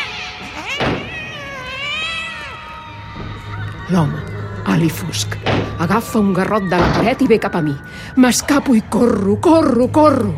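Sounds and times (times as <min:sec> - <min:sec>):
cat yowling: 0:00.0 - 0:03.0
speech: 0:03.9 - 0:10.3.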